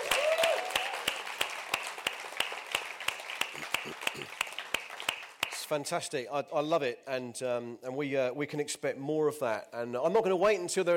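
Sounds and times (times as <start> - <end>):
audience applauding: 0.0 - 5.7
speech: 5.7 - 10.9.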